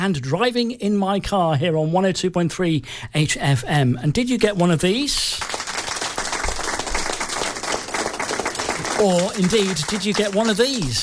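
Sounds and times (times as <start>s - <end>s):
speech: 0.0s - 5.6s, 9.0s - 11.0s
round of applause sound effect: 5.4s - 11.0s.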